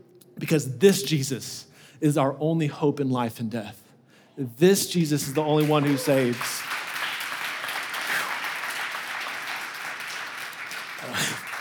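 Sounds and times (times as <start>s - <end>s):
speech: 0.4s - 3.8s, 4.4s - 6.7s
audience applauding: 5.2s - 11.5s.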